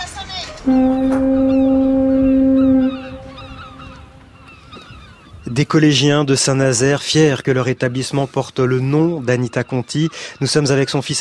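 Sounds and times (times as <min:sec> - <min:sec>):
speech: 0:00.6 - 0:01.4, 0:05.6 - 0:11.1
foghorn blast in a school bell: 0:00.6 - 0:04.4
seagull cries in a school bell: 0:00.7 - 0:05.6.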